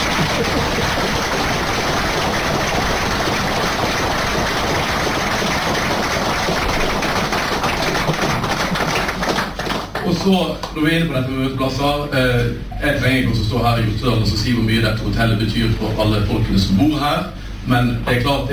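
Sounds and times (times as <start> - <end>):
audience applause: 0.0 - 10.7
speech: 10.2 - 18.5.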